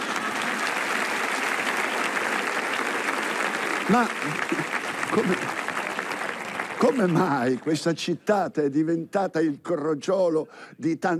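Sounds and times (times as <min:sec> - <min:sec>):
audience applause: 0:00.0 - 0:07.9
speech: 0:03.9 - 0:05.6, 0:06.8 - 0:11.1.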